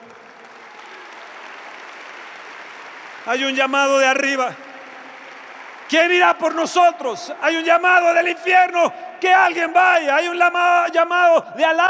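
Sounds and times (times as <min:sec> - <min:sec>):
audience applauding: 0:00.0 - 0:07.2
speech: 0:03.2 - 0:04.6, 0:05.9 - 0:11.8.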